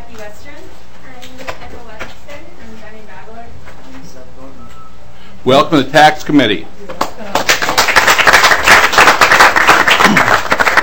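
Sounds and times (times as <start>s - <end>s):
speech: 0.2s - 3.7s, 5.4s - 7.0s
room erupting into applause: 7.0s - 10.8s.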